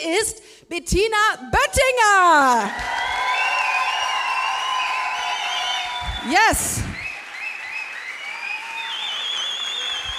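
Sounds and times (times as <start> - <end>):
speech: 0.0 - 3.0, 6.2 - 6.9
live audience applause: 2.7 - 10.1.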